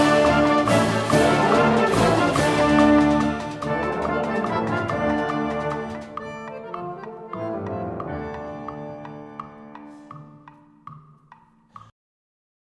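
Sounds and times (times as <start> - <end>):
brass band playing: 0.0 - 10.1.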